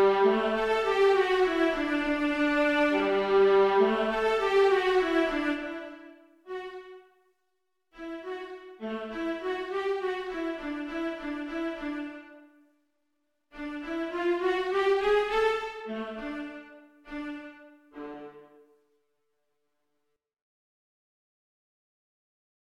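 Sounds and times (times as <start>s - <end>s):
viola ensemble: 0.0s - 7.0s, 8.0s - 12.3s, 13.6s - 18.6s.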